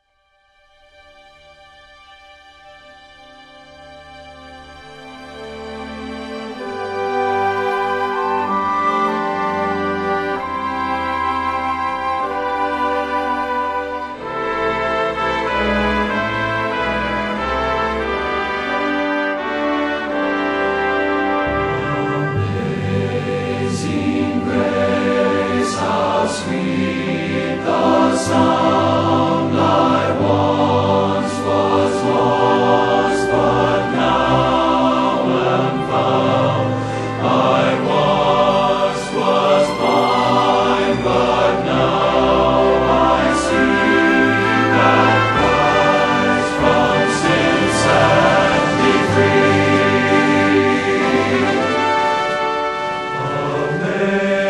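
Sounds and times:
chorale: 0:00.6 - 0:54.4.

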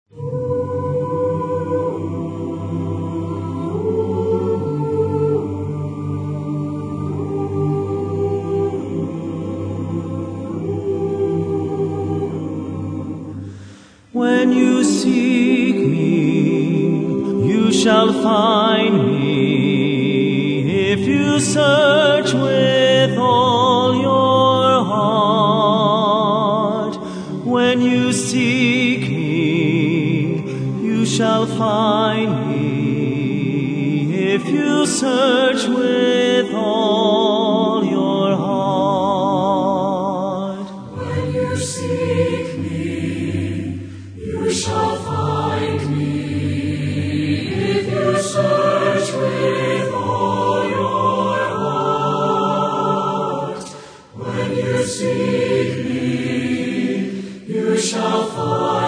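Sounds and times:
singers: 0:00.0 - 0:58.8.

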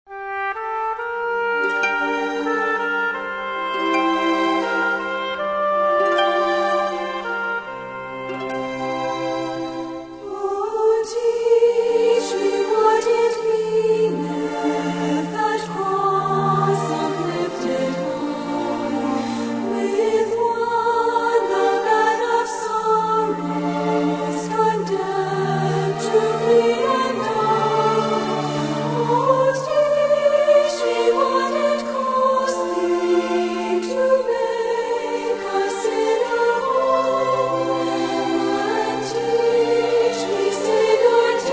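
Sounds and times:
orchestra playing: 0:00.1 - 0:10.4, 0:14.1 - 0:41.5
choir singing: 0:01.5 - 0:41.5.

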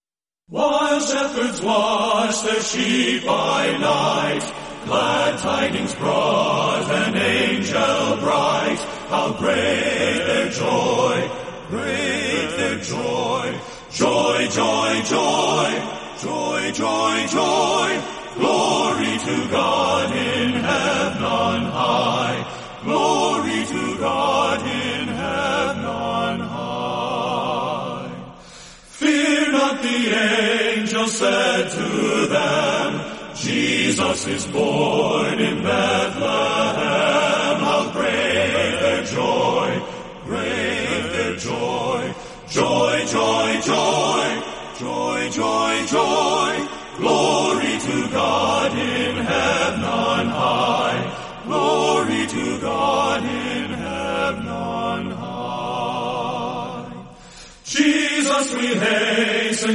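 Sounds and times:
men's chorus singing: 0:00.5 - 0:59.7.

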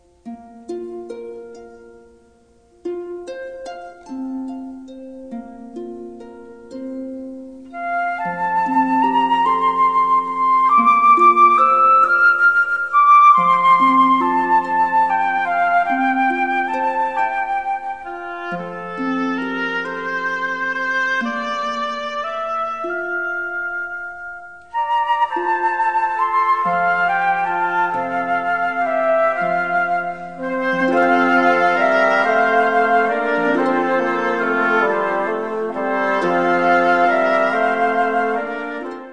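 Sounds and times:
philharmonic orchestra playing: 0:07.7 - 0:39.1
choir singing: 0:30.6 - 0:38.7.

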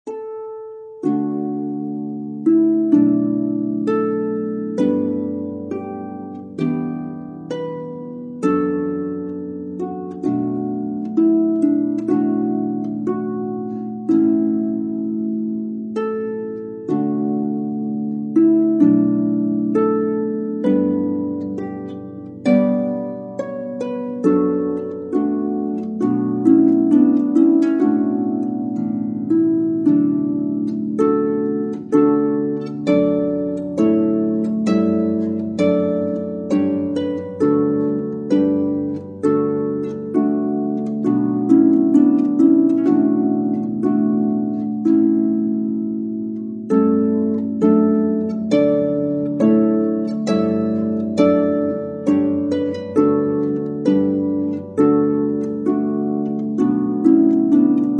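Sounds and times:
harp playing hymns: 0:00.0 - 0:57.9.

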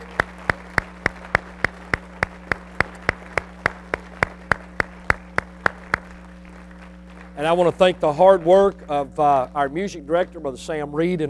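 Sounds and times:
audience clapping in rhythm for a choir: 0:00.0 - 0:08.8
faint low hum: 0:00.0 - 0:11.2
speech: 0:07.4 - 0:11.2.

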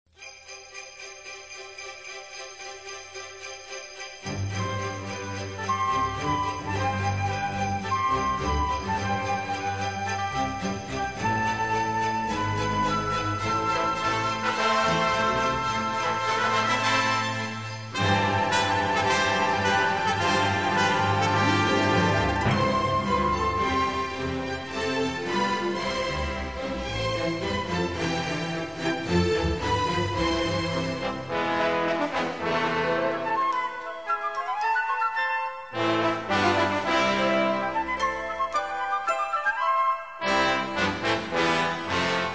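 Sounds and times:
Christmas string music: 0:00.1 - 0:42.3.

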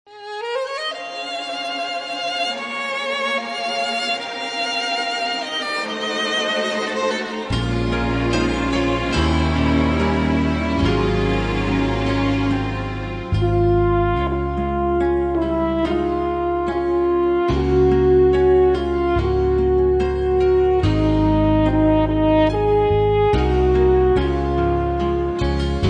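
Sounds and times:
instrumental hymns: 0:00.2 - 0:25.8.

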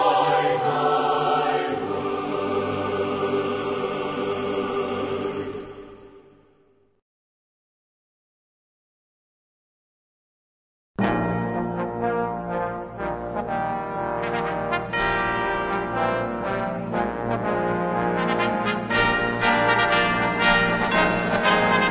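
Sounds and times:
choir singing: 0:00.0 - 0:06.6, 0:14.2 - 0:21.8
orchestra playing: 0:11.0 - 0:21.8.

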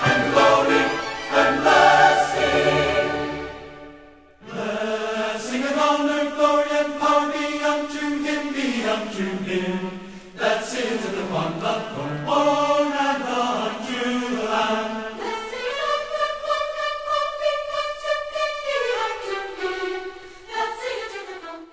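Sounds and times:
orchestra playing: 0:00.0 - 0:04.2
choir singing: 0:00.0 - 0:21.7.

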